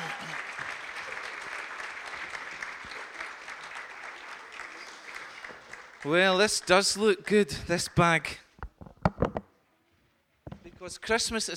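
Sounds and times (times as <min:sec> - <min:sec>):
crowd applause: 0:00.0 - 0:08.1
speech: 0:06.0 - 0:08.4, 0:10.9 - 0:11.5.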